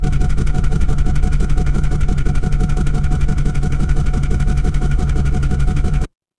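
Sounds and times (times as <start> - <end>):
mechanical engine running: 0.0 - 6.1.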